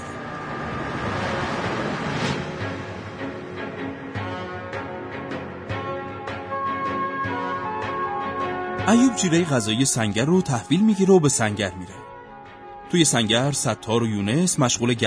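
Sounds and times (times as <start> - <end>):
reconnaissance boat engine droning while moving away: 0.0 - 9.9
speech: 8.9 - 12.0, 12.9 - 15.0.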